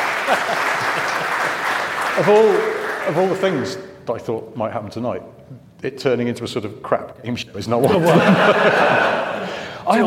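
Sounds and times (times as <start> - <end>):
laughter: 0.0 - 1.8, 7.8 - 9.8
applause: 0.0 - 3.7
speech: 0.3 - 0.8, 2.2 - 9.3, 9.9 - 10.0.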